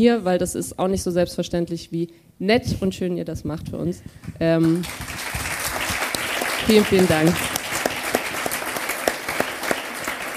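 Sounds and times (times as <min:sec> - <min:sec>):
speech: 0:00.0 - 0:05.3, 0:06.7 - 0:07.6
live audience applause: 0:04.8 - 0:10.3.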